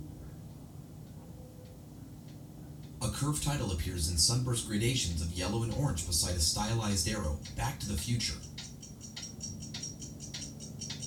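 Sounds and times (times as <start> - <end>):
many clocks ticking together in a cluttered room: 2.8 - 11.0
speech: 3.0 - 8.5.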